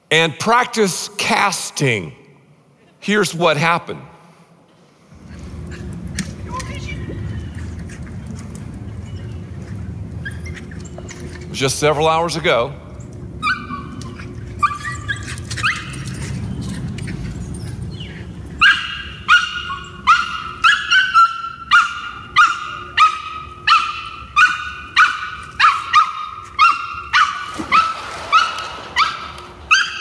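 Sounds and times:
speech: 0.1s - 2.2s, 3.0s - 4.1s, 11.6s - 12.8s
rescued street dog barking: 18.6s - 29.9s.

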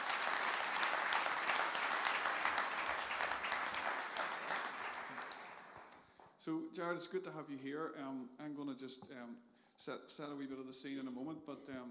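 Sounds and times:
audience applause at an evening church gathering: 0.0s - 6.0s
speech: 6.4s - 11.9s.

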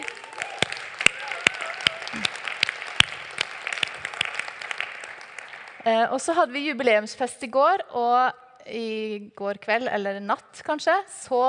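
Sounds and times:
audience clapping: 0.0s - 6.0s
speech: 5.8s - 11.4s.

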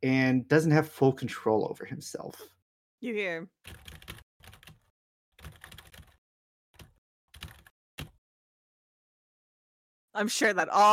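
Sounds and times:
speech: 0.0s - 4.1s, 10.2s - 10.9s
typing on a computer keyboard: 3.7s - 6.2s, 6.8s - 8.2s.

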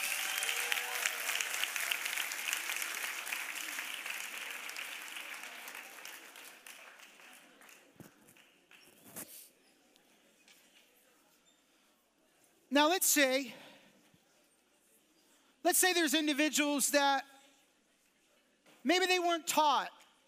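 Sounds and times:
audience clapping: 0.0s - 9.2s
speech: 12.8s - 13.6s, 15.7s - 17.3s, 18.8s - 20.0s.

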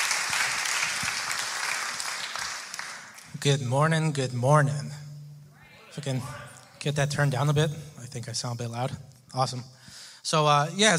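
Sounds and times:
church congregation applauding during a service: 0.0s - 3.4s
speech: 3.4s - 5.0s, 6.0s - 10.9s.

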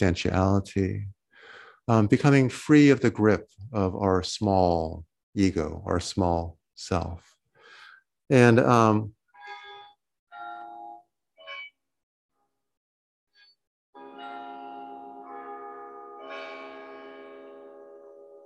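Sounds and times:
speech: 0.0s - 1.2s, 1.9s - 7.3s, 8.3s - 9.2s
bells ringing: 14.0s - 18.4s.

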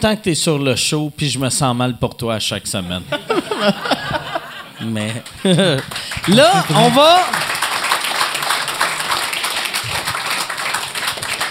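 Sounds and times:
speech: 0.0s - 4.2s, 4.8s - 7.5s
laughter: 3.1s - 7.6s
audience applause: 3.5s - 11.4s.

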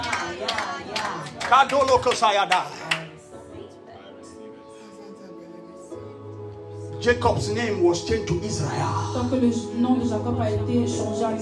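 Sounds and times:
audience clapping: 0.0s - 3.2s
speech: 1.5s - 2.8s, 7.0s - 11.4s.

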